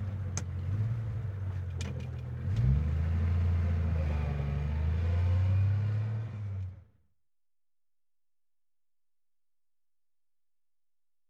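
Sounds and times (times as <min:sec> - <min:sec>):
car engine noise: 0:00.0 - 0:07.0.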